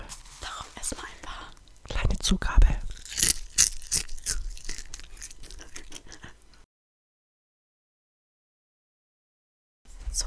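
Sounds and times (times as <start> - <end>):
puffed rice being chewed: 0.0 - 6.6
speech: 2.3 - 2.7.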